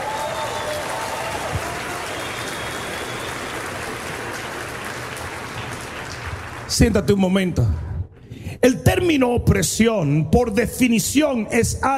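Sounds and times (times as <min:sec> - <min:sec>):
crowd applause: 0:00.0 - 0:07.1
speech: 0:06.7 - 0:07.8, 0:08.6 - 0:11.9.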